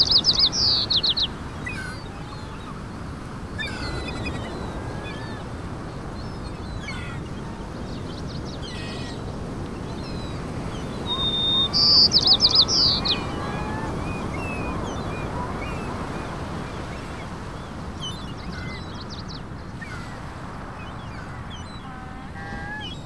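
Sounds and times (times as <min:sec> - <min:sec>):
ocean waves on shore: 0:00.0 - 0:23.0.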